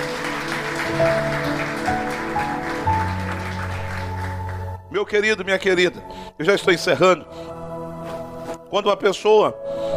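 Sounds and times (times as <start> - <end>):
audience applauding: 0.0 - 4.9
speech: 5.0 - 7.4, 8.7 - 9.7.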